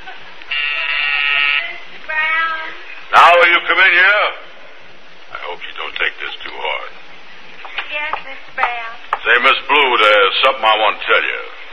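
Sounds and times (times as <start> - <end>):
harsh electric office intercom buzzer: 0.5 - 1.9
speech: 3.4 - 4.4, 5.5 - 6.9, 7.9 - 11.5.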